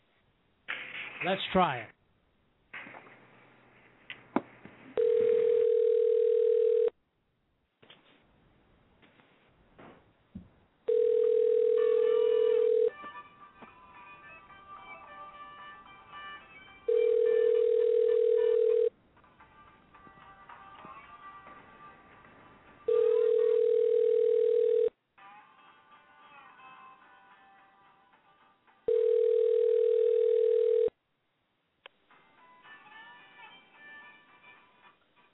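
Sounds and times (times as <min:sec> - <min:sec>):
speech: 0:01.2 - 0:02.0
telephone dial tone and dialing: 0:05.0 - 0:06.9, 0:10.9 - 0:13.0, 0:16.9 - 0:18.9, 0:22.9 - 0:24.9, 0:28.9 - 0:30.9.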